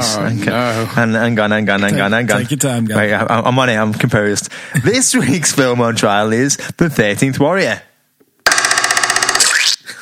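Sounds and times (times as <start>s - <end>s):
speech: 0.1s - 7.9s
springy metallic pogo stick boing: 8.4s - 9.8s.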